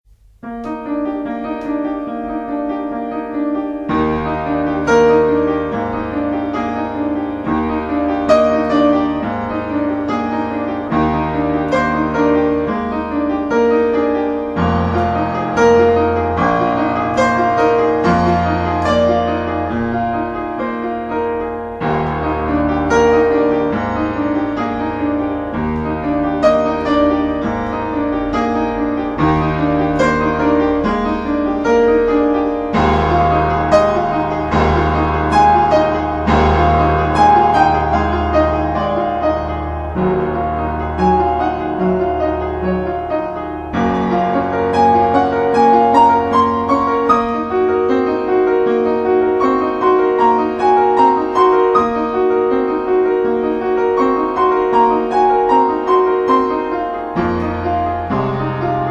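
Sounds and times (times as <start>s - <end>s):
prelude in E-flat major: 0.1s - 58.8s.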